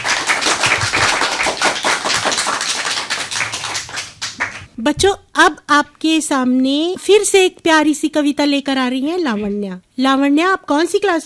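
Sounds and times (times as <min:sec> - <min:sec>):
audience clapping: 0:00.0 - 0:04.8
speech: 0:04.8 - 0:11.2.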